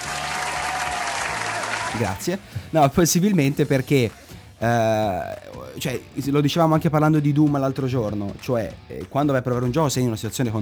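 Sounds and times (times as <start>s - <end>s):
applause: 0.0s - 2.5s
speech: 1.9s - 10.6s.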